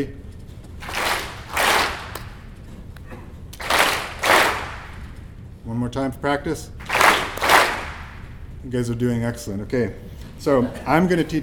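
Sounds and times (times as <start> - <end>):
speech: 0.0 - 0.2, 5.7 - 6.9, 8.6 - 11.4
crowd clapping in unison: 0.8 - 2.5, 3.6 - 5.2, 6.8 - 8.3.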